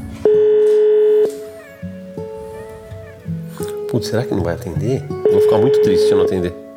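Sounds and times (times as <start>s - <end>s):
WhatsApp outgoing call ringing tone: 0.2s - 1.6s, 5.2s - 6.6s
speech: 4.0s - 6.6s.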